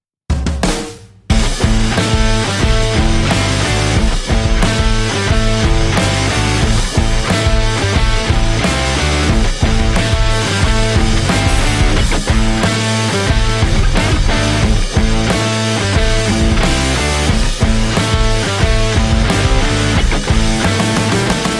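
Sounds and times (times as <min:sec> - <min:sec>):
promo blues music: 0:01.3 - 0:21.5.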